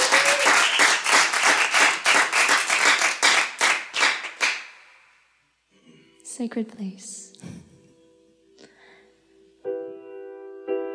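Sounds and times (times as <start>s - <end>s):
audience applause: 0.0s - 4.7s
speech: 6.4s - 7.7s.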